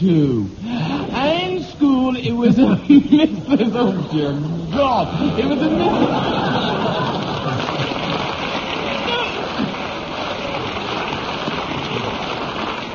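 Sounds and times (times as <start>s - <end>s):
speech: 0.0s - 6.7s
laughter: 2.5s - 12.8s
audience applause: 4.8s - 12.9s.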